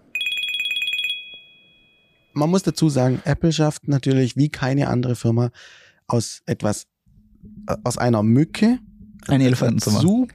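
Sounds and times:
smartwatch ringtone: 0.1s - 2.3s
speech: 2.4s - 6.9s, 7.5s - 10.3s.

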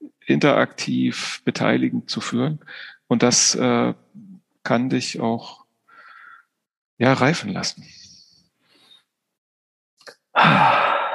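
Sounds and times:
speech: 0.3s - 4.0s, 4.7s - 5.6s, 7.0s - 8.0s
short breath into a microphone: 2.7s - 3.0s, 5.9s - 6.5s, 8.0s - 9.1s, 10.4s - 11.1s.

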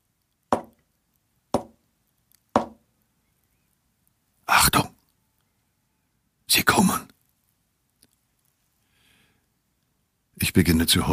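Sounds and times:
quiet knocks on wall: 0.6s - 0.8s, 1.6s - 1.8s, 2.6s - 2.8s
speech: 10.5s - 11.1s.

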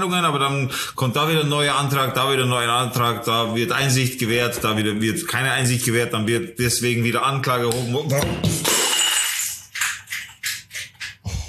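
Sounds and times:
speech: 0.0s - 8.7s
glass clinks: 8.2s - 10.0s
half-full glass water bottle falling and breaking: 8.2s - 10.1s.

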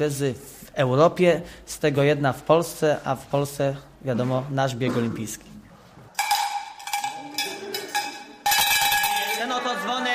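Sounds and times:
speech: 0.0s - 5.5s
Norwegian metal cowbell clanging: 6.2s - 9.7s.

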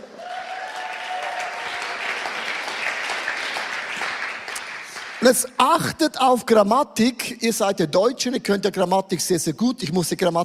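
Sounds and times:
audience clapping: 0.0s - 5.6s
speech: 5.2s - 10.4s.

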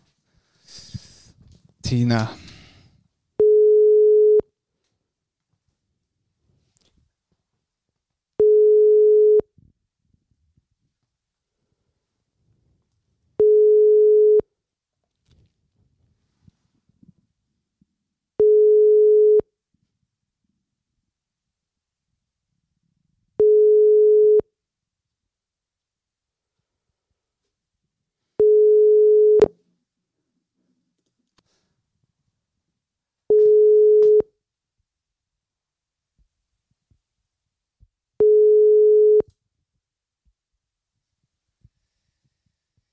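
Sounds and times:
speech: 1.9s - 2.4s
telephone tone after dialing a number: 3.4s - 4.4s, 8.4s - 9.4s, 13.4s - 14.4s, 18.4s - 19.4s, 23.4s - 24.4s, 28.4s - 29.5s, 33.3s - 34.2s, 38.2s - 39.3s.

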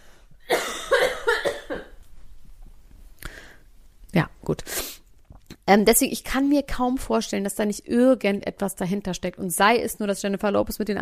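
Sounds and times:
loud harsh coughing: 0.5s - 2.0s
speech: 4.2s - 4.8s, 5.7s - 11.0s.

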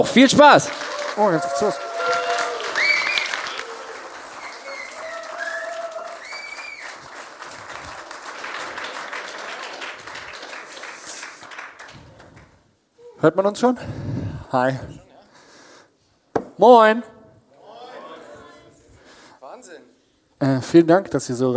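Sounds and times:
speech: 0.0s - 2.2s, 13.2s - 15.0s, 16.6s - 17.2s, 20.4s - 21.5s
applause: 0.0s - 12.6s.

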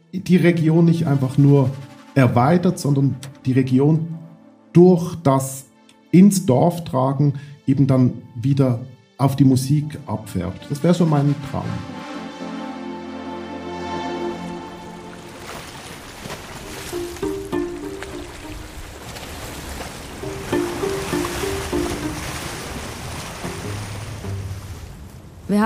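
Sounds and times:
speech: 0.1s - 12.0s
lake water rushing and splashing heard from a crossing ship: 10.6s - 25.6s
crossing ship engine drone: 11.9s - 25.5s.

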